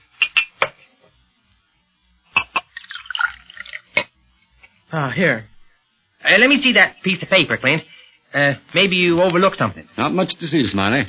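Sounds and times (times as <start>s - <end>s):
glass clinking: 0.2s - 0.7s, 2.3s - 4.1s
water poured into a glass: 2.6s - 4.1s
speech: 4.9s - 5.5s, 6.2s - 11.0s.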